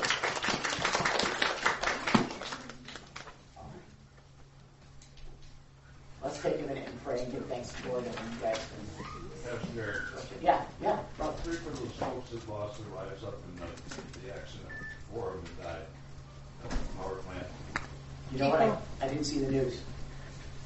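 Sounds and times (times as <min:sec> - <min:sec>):
audience applause: 0:00.0 - 0:03.4
speech: 0:06.4 - 0:15.9, 0:18.3 - 0:19.9.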